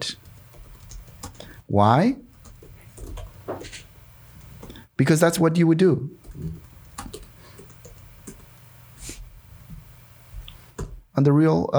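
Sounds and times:
keys being typed on a computer keyboard: 0.1 - 1.6, 2.3 - 4.9, 6.2 - 8.7
speech: 1.7 - 2.2, 5.0 - 6.7, 11.2 - 11.7.

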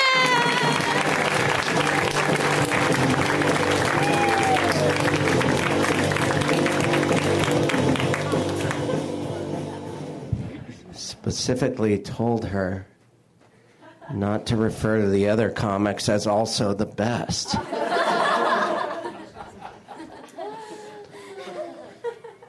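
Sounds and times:
audience applause: 0.0 - 9.0
audience cheering: 0.0 - 9.1
speech: 11.5 - 12.9, 14.1 - 17.8
laughter: 17.4 - 22.4.

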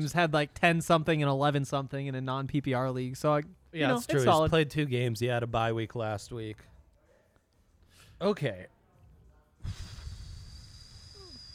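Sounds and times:
speech: 0.0 - 6.7, 8.2 - 8.8, 9.6 - 9.9
man blowing out a big breath: 9.6 - 11.5.

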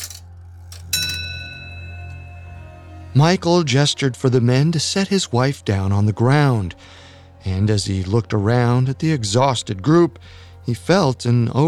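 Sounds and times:
low steady hum: 0.0 - 11.6
clock bell striking midnight: 0.8 - 3.3
speech: 3.2 - 11.6.

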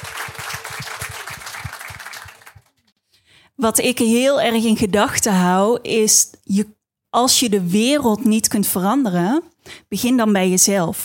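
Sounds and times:
audience applause at a panel discussion about teaching: 0.0 - 2.8
speech: 3.6 - 11.0.

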